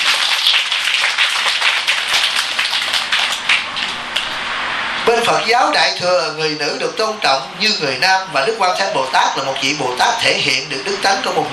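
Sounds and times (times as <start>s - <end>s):
crowd applause at a Buddhist dharma talk: 0.0s - 4.4s
speech: 5.3s - 11.5s.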